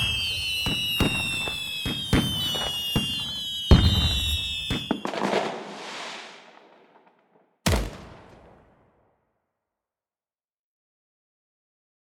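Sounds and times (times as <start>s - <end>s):
firework: 0.0s - 9.2s.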